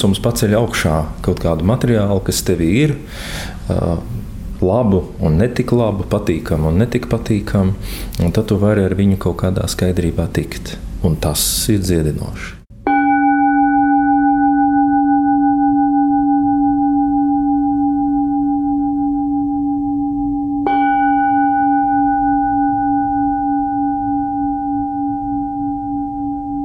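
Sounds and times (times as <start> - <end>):
speech: 0.0 - 12.6
meditation gong ringing: 12.8 - 26.6.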